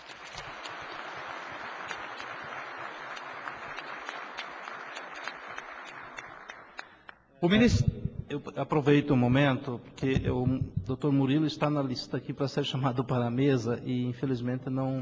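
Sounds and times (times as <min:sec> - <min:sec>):
crowd applause: 0:00.0 - 0:07.0
speech: 0:07.4 - 0:14.9.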